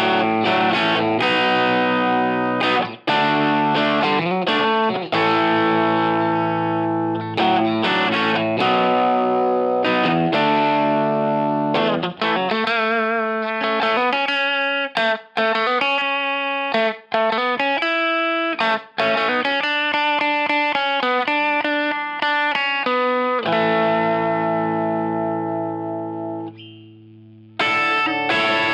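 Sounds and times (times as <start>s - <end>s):
electric guitar through a Marshall Plexi amplifier with Fedora pickups: 0.0s - 28.7s.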